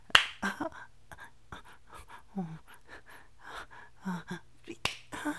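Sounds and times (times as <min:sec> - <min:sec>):
slap on the back of someone's neck: 0:00.1 - 0:00.5, 0:04.8 - 0:05.1.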